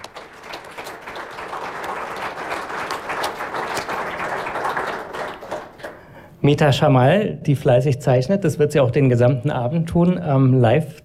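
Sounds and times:
applause: 0.0s - 6.2s
speech: 6.4s - 11.0s.

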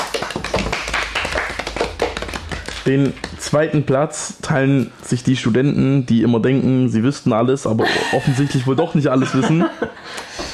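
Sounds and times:
small group hand clapping at a quiz results announcement: 0.0s - 3.8s
speech: 2.9s - 10.3s
laughter: 7.8s - 10.2s.

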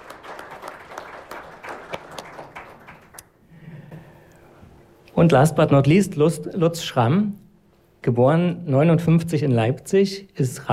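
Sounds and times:
audience applauding: 0.0s - 3.4s
speech: 5.2s - 7.4s, 8.0s - 10.7s.

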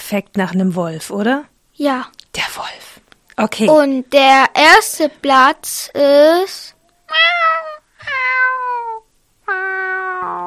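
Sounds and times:
speech: 0.1s - 7.6s
kitten meowing: 7.1s - 10.4s.

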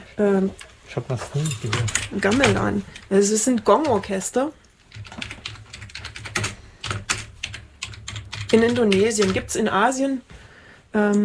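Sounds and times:
speech: 0.2s - 5.3s, 8.5s - 10.3s, 10.9s - 11.2s
rapid typing on a computer keyboard: 1.7s - 4.1s, 4.8s - 9.6s.

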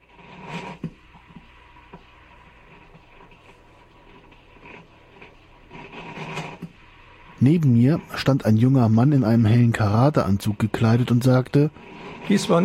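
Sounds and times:
coffee machine rattling and whirring: 0.0s - 12.6s
speech: 7.4s - 12.6s.

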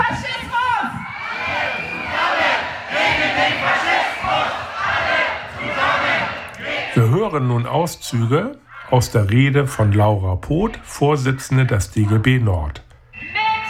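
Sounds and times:
protest crowd cheering: 0.0s - 7.2s
protest crowd chanting at a trade union rally against social cuts: 0.9s - 7.2s
speech: 7.3s - 12.9s.

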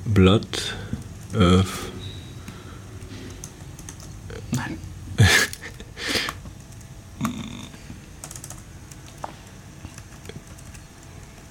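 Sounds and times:
speech: 0.1s - 2.0s, 4.5s - 5.4s
computer keyboard typing: 2.4s - 4.7s, 5.5s - 7.4s, 8.1s - 11.4s.

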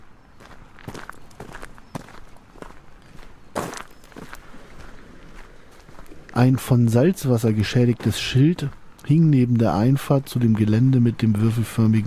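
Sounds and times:
footsteps walking: 0.4s - 6.4s, 7.7s - 9.3s
speech: 6.4s - 12.0s.

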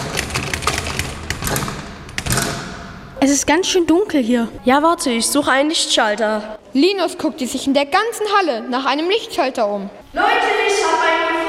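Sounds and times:
stuck door being forced: 0.0s - 2.9s
speech: 3.2s - 11.4s.

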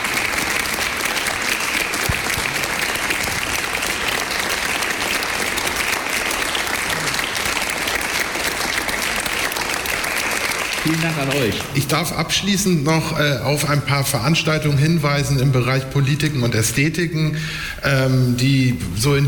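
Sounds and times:
audience applause: 0.0s - 12.0s
speech: 10.9s - 19.2s.

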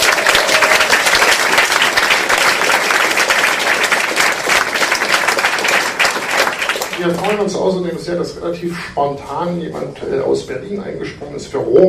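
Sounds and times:
audience applause: 0.0s - 7.4s
speech: 7.0s - 11.8s.

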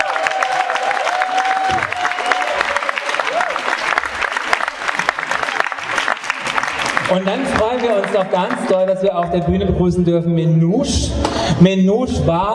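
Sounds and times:
audience applause: 0.0s - 9.0s
speech: 7.1s - 12.5s.

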